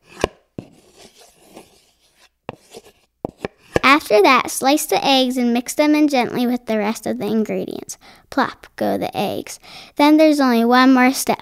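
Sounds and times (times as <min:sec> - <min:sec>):
spoon scraping against the side of a bowl of macaroni salad: 0:00.0 - 0:03.8
speech: 0:03.9 - 0:11.3.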